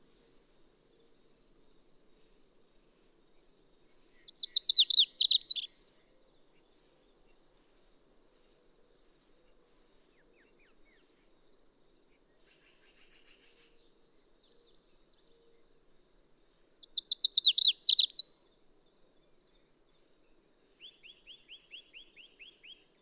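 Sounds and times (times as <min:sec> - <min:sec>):
bird song: 0:03.4 - 0:07.6, 0:09.2 - 0:11.4, 0:12.1 - 0:15.8, 0:16.8 - 0:23.0.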